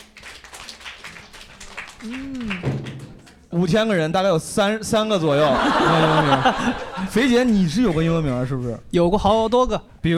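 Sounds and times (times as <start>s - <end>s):
few people clapping: 0.0s - 3.5s
speech: 2.0s - 2.7s, 3.5s - 10.1s
laughter: 5.3s - 7.4s.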